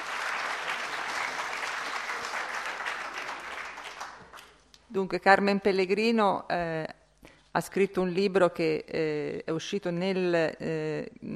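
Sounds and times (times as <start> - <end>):
crowd applause: 0.0 - 4.6
speech: 4.9 - 7.0, 7.6 - 11.3.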